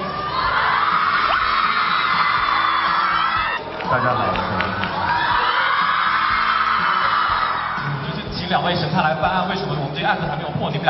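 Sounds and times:
audience screaming: 0.0 - 8.2
speech: 3.9 - 4.6, 8.5 - 10.8.

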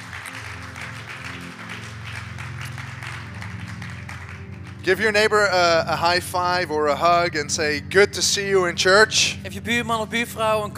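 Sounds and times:
church audience applause: 0.0 - 5.4
speech: 4.8 - 10.7.

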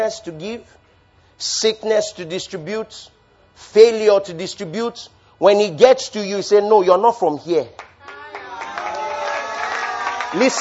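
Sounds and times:
speech: 0.0 - 0.8, 1.4 - 7.9, 10.3 - 10.6
audience clapping: 7.8 - 10.6
audience cheering: 8.0 - 10.6.

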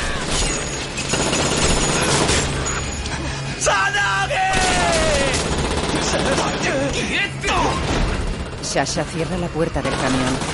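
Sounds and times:
gunfire from several guns: 0.0 - 2.8, 4.5 - 7.0, 7.6 - 10.5
people yelling and shouting over the shooting: 3.6 - 5.5, 6.3 - 7.8
speech: 8.7 - 10.5.

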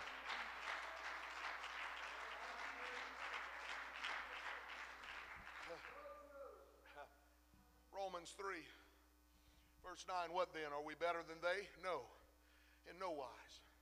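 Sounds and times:
audience clapping hands: 0.0 - 6.1
speech: 8.2 - 8.8, 9.8 - 12.2, 12.8 - 13.7.

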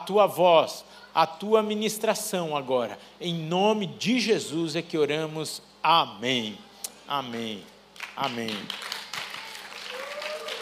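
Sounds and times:
speech: 0.0 - 8.9
crowd clapping: 8.0 - 10.5.

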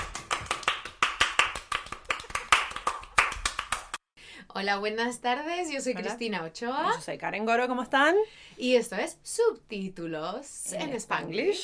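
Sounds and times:
rapid hand clapping: 0.0 - 4.0
speech: 4.6 - 11.6.

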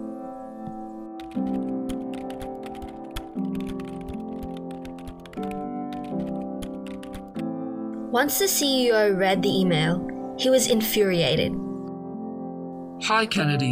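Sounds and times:
soft music: 0.0 - 13.7
keyboard typing of an email: 0.6 - 7.4
speech: 8.2 - 11.6, 13.1 - 13.7.

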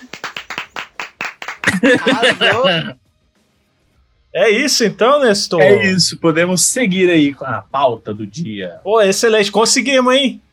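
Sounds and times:
applause: 0.0 - 2.6
laughter: 1.6 - 3.0
speech: 1.8 - 3.0, 4.4 - 10.5.

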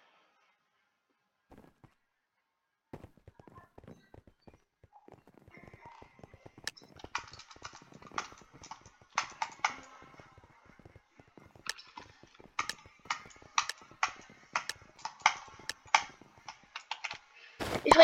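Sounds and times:
computer keyboard clacking: 3.0 - 18.0
computer mouse clicks: 5.6 - 17.2.

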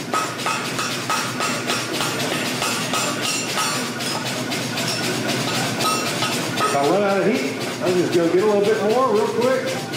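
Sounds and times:
wood knocking hot metal tip over an anvil horn: 0.0 - 7.5
speech: 6.8 - 9.8.

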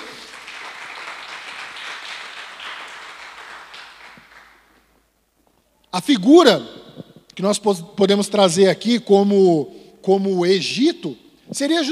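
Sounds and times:
audience applause: 0.0 - 4.7
speech: 6.0 - 6.7, 7.4 - 11.8.

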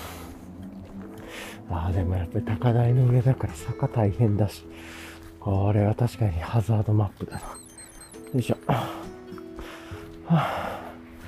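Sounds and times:
heavy breathing, out of breath: 0.0 - 1.7, 4.7 - 5.4, 8.7 - 11.2
speech: 1.7 - 7.6, 8.3 - 9.0, 10.3 - 10.6.

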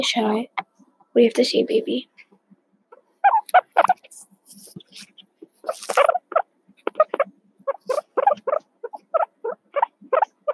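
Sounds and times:
speech: 0.0 - 2.1, 5.7 - 6.2
guinea pig squeaking: 2.9 - 4.1, 5.0 - 10.5.

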